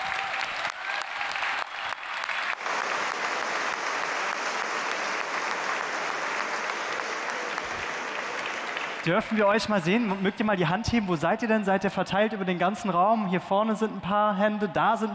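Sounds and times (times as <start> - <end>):
audience applause for nominees: 0.0 - 10.3
speech: 9.0 - 15.1.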